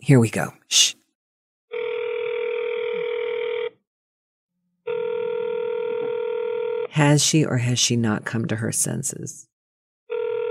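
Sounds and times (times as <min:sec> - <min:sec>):
speech: 0:00.0 - 0:01.0, 0:07.0 - 0:09.5
telephone ringing: 0:01.7 - 0:03.8, 0:04.8 - 0:06.9, 0:10.1 - 0:10.4.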